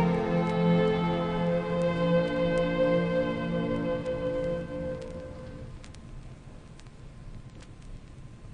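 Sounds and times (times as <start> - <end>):
strings playing an elegy: 0.0 - 5.7
timpani: 0.0 - 5.7.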